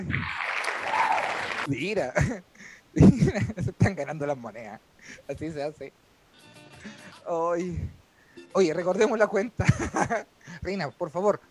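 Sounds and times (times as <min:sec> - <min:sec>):
speech: 0:00.0 - 0:00.5, 0:01.6 - 0:06.0, 0:06.8 - 0:11.4
applause: 0:00.0 - 0:01.7
laughter: 0:09.5 - 0:10.3.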